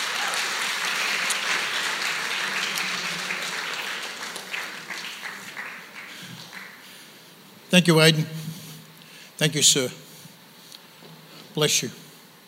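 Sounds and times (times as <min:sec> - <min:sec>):
audience applause: 0:00.0 - 0:07.0
speech: 0:07.7 - 0:08.4, 0:09.4 - 0:10.1, 0:11.6 - 0:12.0.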